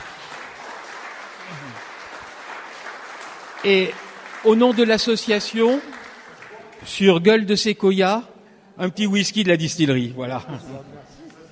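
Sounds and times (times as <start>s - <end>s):
audience applause: 0.0s - 6.9s
speech: 3.6s - 6.0s, 6.8s - 11.2s.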